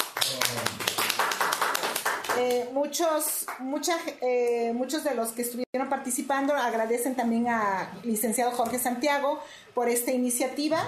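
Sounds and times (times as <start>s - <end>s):
audience applause: 0.0s - 2.5s
speech: 2.4s - 10.8s.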